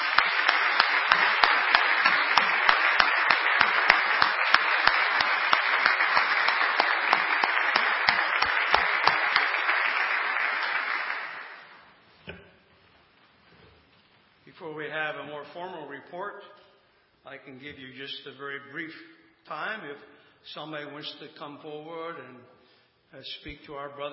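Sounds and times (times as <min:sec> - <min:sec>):
audience applause: 0:00.0 - 0:11.8
speech: 0:17.4 - 0:24.1.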